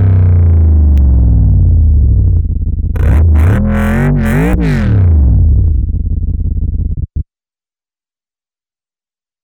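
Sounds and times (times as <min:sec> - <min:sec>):
luxury V8 engine: 0:00.0 - 0:07.2.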